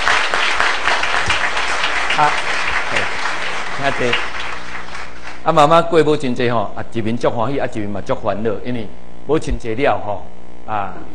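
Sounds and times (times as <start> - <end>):
audience applauding: 0.0 - 5.4
speech: 2.2 - 3.0, 3.8 - 4.4, 5.4 - 11.1.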